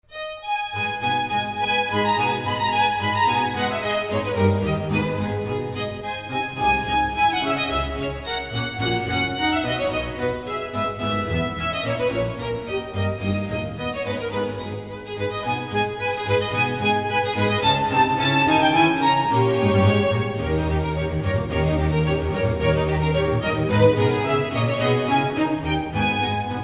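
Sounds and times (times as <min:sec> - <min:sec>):
violin concerto in A minor allegro: 0:00.0 - 0:26.6.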